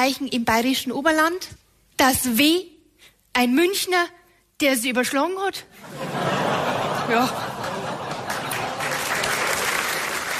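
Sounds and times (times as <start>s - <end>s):
speech: 0.0s - 2.7s, 3.4s - 7.5s
laughter: 5.8s - 9.6s
applause: 7.5s - 10.3s.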